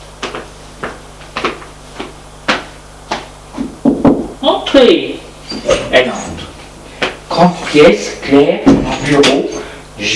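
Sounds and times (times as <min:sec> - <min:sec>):
knocking on an office door: 0:03.6 - 0:04.3
speech: 0:04.8 - 0:05.2, 0:07.4 - 0:10.1.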